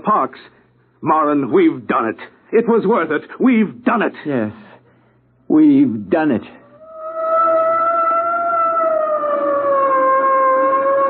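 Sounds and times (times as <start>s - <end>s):
speech: 0.0s - 4.7s, 5.5s - 6.6s
police boat siren wailing: 6.7s - 11.0s.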